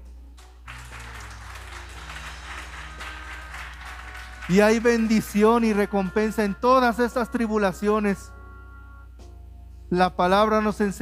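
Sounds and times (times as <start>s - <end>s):
audience applause: 0.6s - 5.3s
speech: 4.5s - 8.4s, 9.9s - 11.0s.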